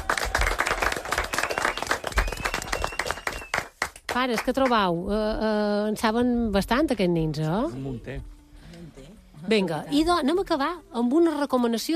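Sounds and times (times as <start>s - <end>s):
room full of children and adults applauding: 0.0s - 4.2s
speech: 4.2s - 8.3s, 9.5s - 11.9s.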